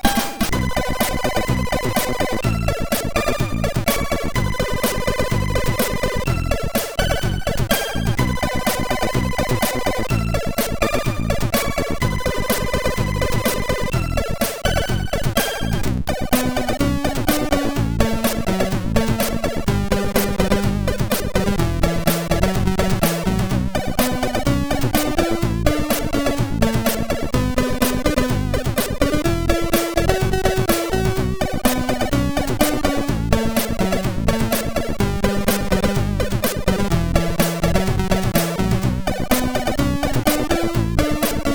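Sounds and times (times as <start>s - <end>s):
intro music on a SID MOS6581R4 chip: 0.1s - 41.5s.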